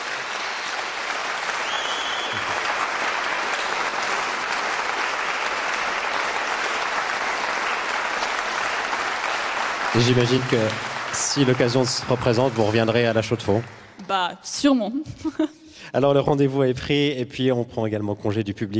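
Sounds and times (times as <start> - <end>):
concert audience applause: 0.0 - 14.2
speech: 10.0 - 18.7.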